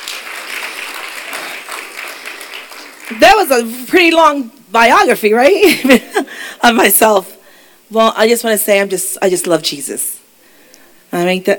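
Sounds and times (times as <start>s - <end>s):
audience clapping hands: 0.0s - 3.6s
speech: 3.1s - 10.2s, 11.1s - 11.5s.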